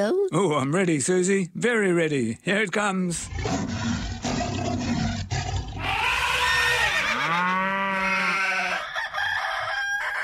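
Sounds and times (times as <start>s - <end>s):
speech: 0.0s - 3.8s
animal sound mix: 3.1s - 10.2s
rooster crowing: 5.8s - 10.2s.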